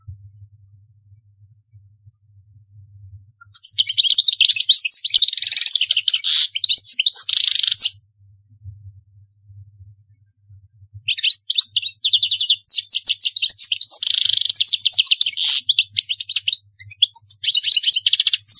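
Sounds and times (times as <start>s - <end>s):
European goldfinch singing: 3.4s - 8.0s, 11.1s - 18.5s.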